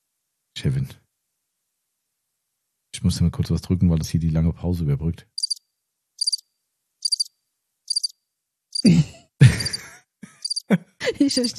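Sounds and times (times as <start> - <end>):
speech: 0.6 - 1.0, 3.0 - 5.3, 11.2 - 11.5
birds twittering: 5.4 - 5.6, 6.2 - 6.4, 7.0 - 7.3, 7.9 - 8.1, 10.4 - 10.6
laughter: 8.8 - 11.5.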